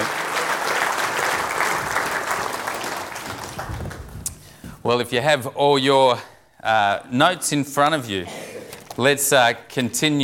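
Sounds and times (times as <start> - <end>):
audience applause: 0.0 - 4.2
speech: 4.9 - 8.4, 9.0 - 10.2.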